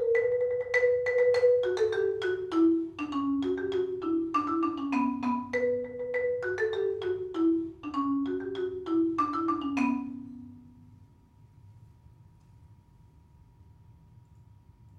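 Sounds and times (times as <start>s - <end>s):
keyboard: 0.0s - 10.9s.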